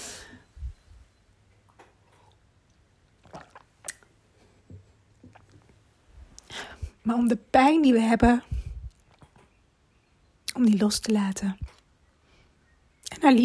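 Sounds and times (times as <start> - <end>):
person sipping tea: 1.8 - 4.1, 5.1 - 6.8
speech: 7.1 - 8.5, 10.6 - 11.8, 13.2 - 13.4.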